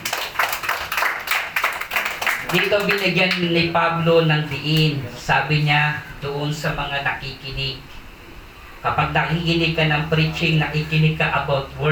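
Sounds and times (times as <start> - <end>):
audience clapping: 0.0 - 3.6
speech: 2.5 - 7.9, 8.8 - 11.9.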